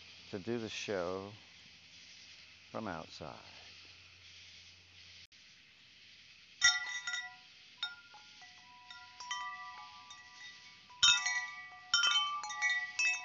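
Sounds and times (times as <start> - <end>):
speech: 0.3 - 1.5, 2.7 - 3.6
wind chime tinkling outdoors: 6.6 - 13.2.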